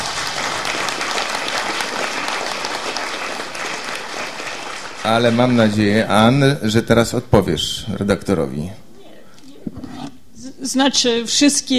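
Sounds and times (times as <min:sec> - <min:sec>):
audience applause: 0:00.0 - 0:06.3
speech: 0:05.1 - 0:08.8, 0:10.6 - 0:11.7.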